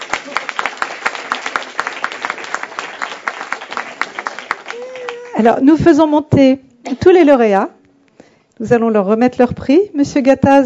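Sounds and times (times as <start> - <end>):
audience applauding: 0.0 - 5.4
speech: 5.4 - 7.8, 8.6 - 10.6.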